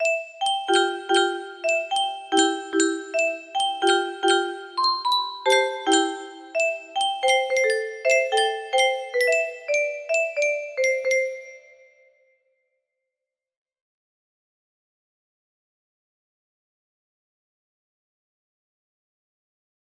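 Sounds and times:
music box melody: 0.0s - 12.0s.

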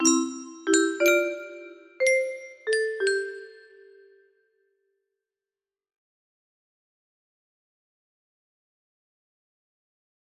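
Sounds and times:
music box melody: 0.0s - 4.2s.

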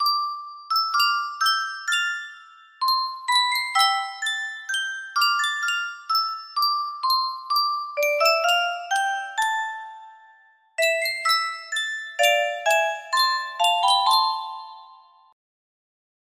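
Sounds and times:
Yunsheng music box melody: 0.0s - 15.4s.

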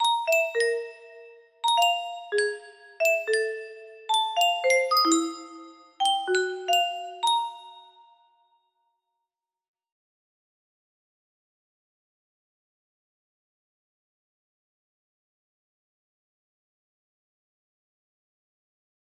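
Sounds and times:
music box jingle melody: 0.0s - 8.2s.

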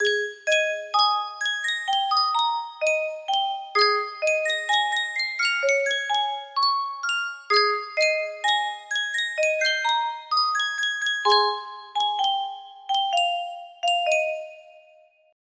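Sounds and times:
Yunsheng music box melody: 0.0s - 15.0s.

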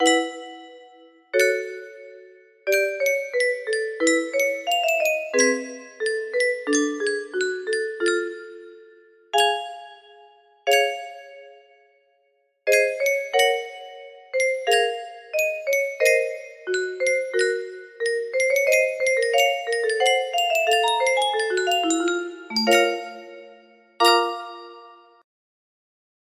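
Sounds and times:
music box improvisation: 0.0s - 1.9s, 2.7s - 8.8s, 12.7s - 24.8s.

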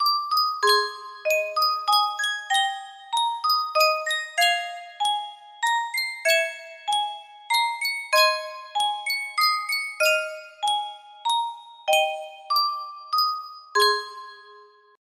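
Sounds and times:
Sankyo music box: 0.0s - 14.9s.

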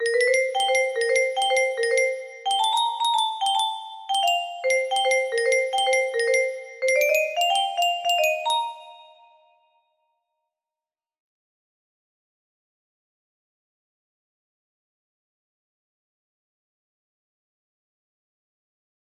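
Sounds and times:
music box melody: 0.0s - 9.5s.

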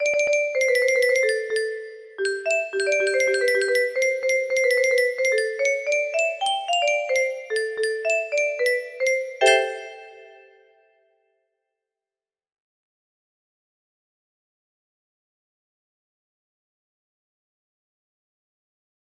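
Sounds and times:
music box melody: 0.0s - 10.6s.

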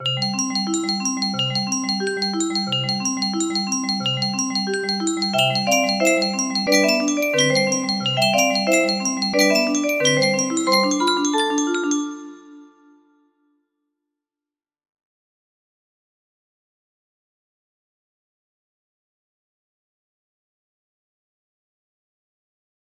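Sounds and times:
music box melody: 0.0s - 13.1s.

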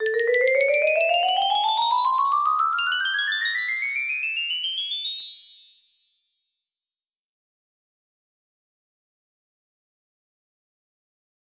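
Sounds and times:
music box melody: 0.0s - 5.8s.

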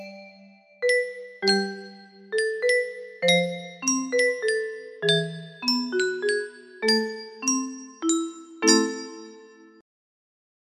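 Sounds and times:
slow music box: 0.0s - 9.8s.

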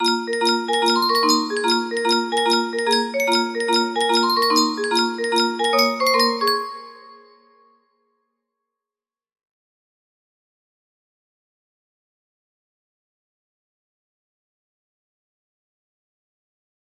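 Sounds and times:
jaunty music loop: 0.0s - 7.2s.

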